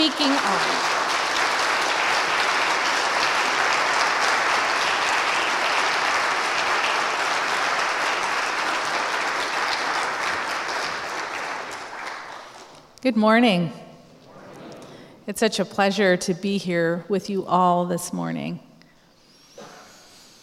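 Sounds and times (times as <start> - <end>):
speech: 0.0 - 1.1, 13.0 - 13.8, 15.3 - 18.7
audience applause welcoming a speaker at a Goshen College convocation: 0.0 - 12.8.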